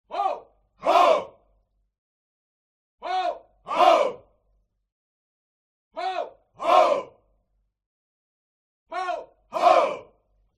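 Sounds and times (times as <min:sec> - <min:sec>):
human crowd military shout: 0:00.1 - 0:01.4, 0:03.1 - 0:04.2, 0:06.0 - 0:07.2, 0:09.0 - 0:10.2.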